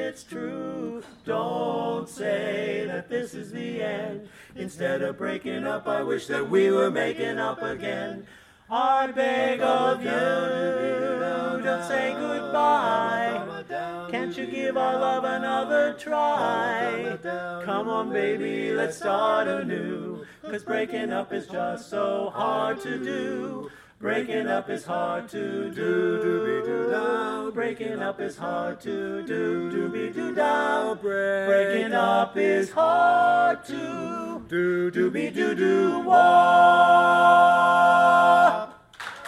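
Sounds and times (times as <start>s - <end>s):
barbershop quartet singing: 0.0s - 38.9s.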